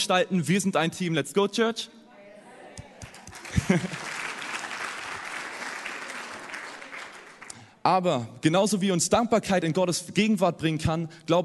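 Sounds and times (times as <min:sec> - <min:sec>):
speech: 0:00.0 - 0:02.0, 0:03.5 - 0:04.1, 0:07.9 - 0:11.4
audience clapping: 0:02.8 - 0:07.8
laughter: 0:03.1 - 0:05.0.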